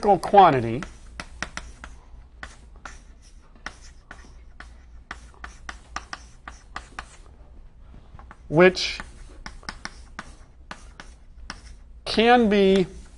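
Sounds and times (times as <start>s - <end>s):
speech: 0.0s - 0.9s, 8.5s - 9.1s, 12.2s - 13.0s
handwriting during a physics lecture: 0.0s - 7.3s, 8.2s - 13.1s.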